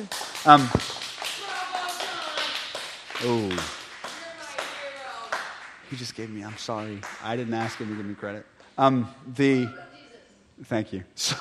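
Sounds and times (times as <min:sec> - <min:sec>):
speech: 0:00.0 - 0:01.0, 0:03.2 - 0:03.8, 0:05.9 - 0:09.9, 0:10.6 - 0:11.4
audience clapping: 0:00.0 - 0:08.4.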